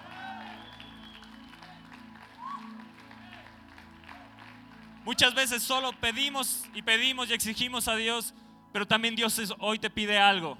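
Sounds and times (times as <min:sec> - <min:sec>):
audience applause: 0:00.0 - 0:06.9
speech: 0:05.1 - 0:10.5.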